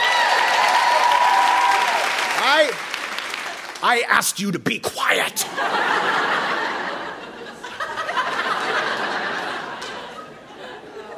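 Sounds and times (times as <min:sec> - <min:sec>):
cheers and whoops: 0:00.0 - 0:02.2
crowd clapping: 0:00.0 - 0:04.8
speech: 0:03.8 - 0:06.4
laughter: 0:05.1 - 0:11.1.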